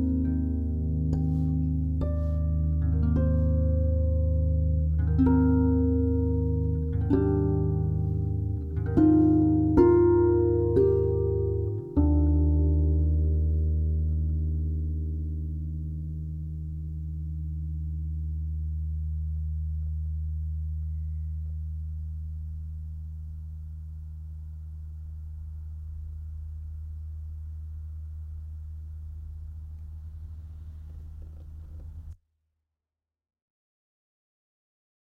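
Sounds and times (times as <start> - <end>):
solo lever harp piece: 0.0 - 24.0.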